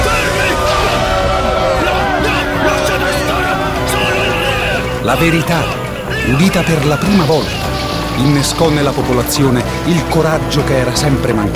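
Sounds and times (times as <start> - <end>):
crowd of subjects erupting in one rebellious shout: 0.0 - 10.1
speech: 5.2 - 11.5.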